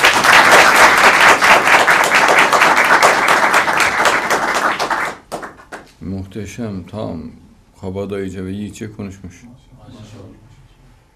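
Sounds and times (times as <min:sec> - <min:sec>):
crowd applause: 0:00.0 - 0:05.8
speech: 0:06.3 - 0:10.6.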